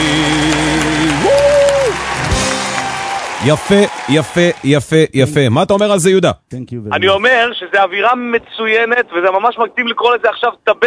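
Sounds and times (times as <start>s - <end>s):
crowd applause: 0.0s - 4.8s
speech: 3.4s - 10.8s.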